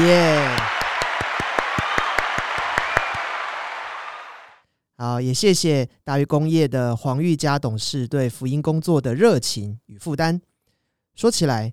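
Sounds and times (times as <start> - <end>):
speech: 0.0 - 0.6, 5.0 - 10.5, 11.2 - 11.7
applause: 0.0 - 4.6.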